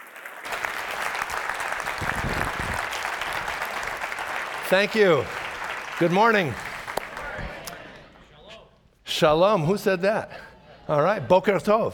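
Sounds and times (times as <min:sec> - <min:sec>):
audience at Grace Fellowship Church applauding a guest speaker: 0:00.0 - 0:07.8
speech: 0:04.7 - 0:05.4, 0:06.0 - 0:06.7, 0:09.2 - 0:11.9.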